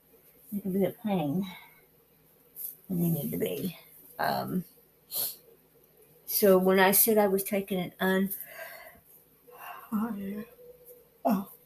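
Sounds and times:
speech: 0.5s - 1.7s, 2.9s - 5.4s, 6.3s - 8.4s, 9.9s - 10.6s, 11.2s - 11.5s
person yawning: 11.3s - 11.6s.

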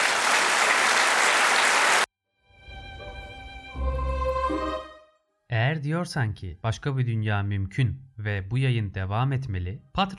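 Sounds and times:
audience applause: 0.0s - 2.1s
sustained tonal music-like sounds: 2.4s - 5.3s
speech: 5.6s - 10.1s.

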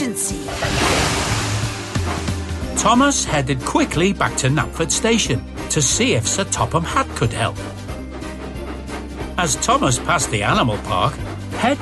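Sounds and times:
stormy sea waves: 0.3s - 2.8s
speech: 2.8s - 7.8s, 9.4s - 11.8s.

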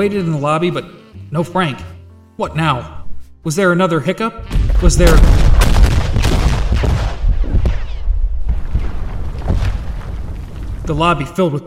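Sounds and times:
speech: 0.0s - 5.6s, 10.9s - 11.6s
explosions: 4.4s - 11.2s.

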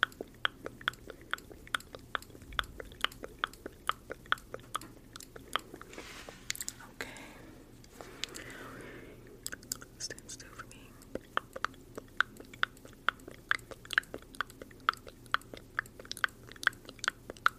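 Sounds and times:
wet mouth clicks and smacks: 0.0s - 6.8s, 7.8s - 8.6s, 9.2s - 17.5s
breathy hiss: 5.8s - 9.4s.

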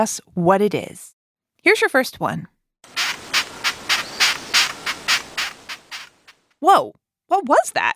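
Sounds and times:
speech: 0.0s - 2.5s, 6.6s - 7.9s
long-horned beetle stridulation: 3.0s - 6.3s.

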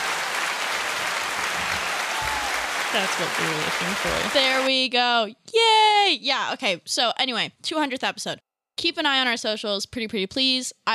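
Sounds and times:
celebration applause: 0.0s - 4.7s
speech: 2.9s - 10.9s.

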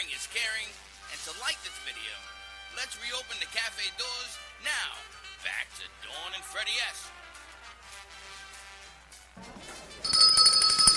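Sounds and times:
speech: 0.0s - 7.2s
bell ringing: 10.0s - 10.9s.

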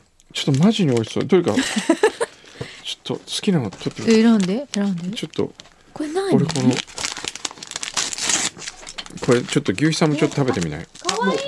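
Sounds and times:
rice cracker pack plastic wrapping crinkling: 0.3s - 11.4s
speech: 0.4s - 2.2s, 3.0s - 6.9s, 9.3s - 11.4s
laughter: 1.5s - 2.3s.

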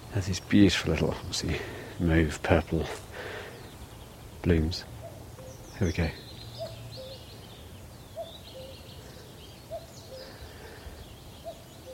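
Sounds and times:
wind on the moor: 0.0s - 11.9s
speech: 0.2s - 3.4s, 4.4s - 4.9s, 5.8s - 6.2s
cuckoo calling on the moor: 5.0s - 11.9s.

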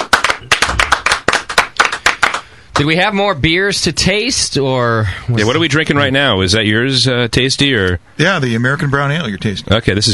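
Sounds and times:
small audience applauding the winner of a beer-brewing contest: 0.0s - 2.9s
speech: 2.8s - 10.1s.

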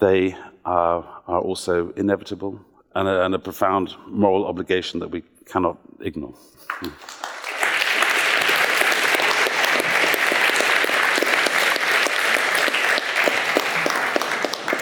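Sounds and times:
speech: 0.0s - 7.4s
audience applause: 6.7s - 14.8s.

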